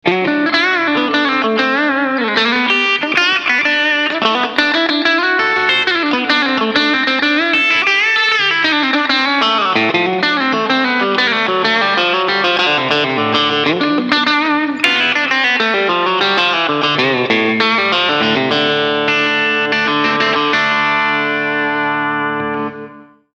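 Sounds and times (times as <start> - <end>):
country music: 0.0 - 23.2.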